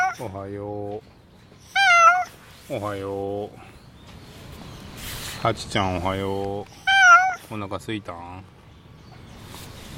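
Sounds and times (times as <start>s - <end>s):
domestic cat meowing: 0.0s - 0.2s, 1.7s - 2.4s, 6.8s - 7.5s
speech: 0.2s - 1.8s, 2.7s - 3.8s, 5.4s - 6.8s, 7.5s - 8.6s.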